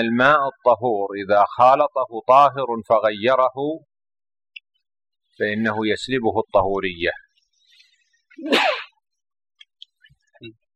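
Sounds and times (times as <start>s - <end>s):
speech: 0.0s - 3.9s, 5.4s - 7.2s, 8.4s - 8.8s, 10.4s - 10.6s
person sneezing: 8.4s - 9.0s.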